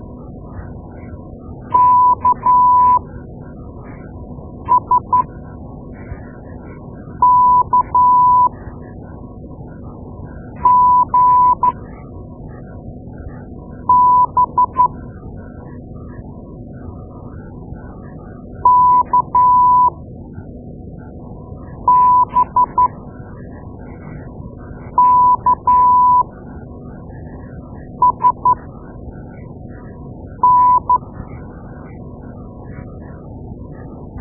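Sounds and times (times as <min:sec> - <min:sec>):
morse code beeps: 0:01.8 - 0:03.0, 0:04.7 - 0:05.3, 0:07.2 - 0:08.5, 0:10.6 - 0:11.8, 0:13.9 - 0:14.9, 0:18.7 - 0:19.9, 0:21.9 - 0:22.9, 0:25.0 - 0:26.2, 0:28.0 - 0:28.6, 0:30.4 - 0:31.0.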